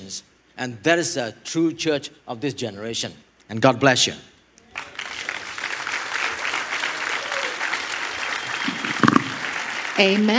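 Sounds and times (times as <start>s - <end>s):
speech: 0.1s - 4.3s, 10.0s - 10.3s
applause: 4.7s - 10.3s.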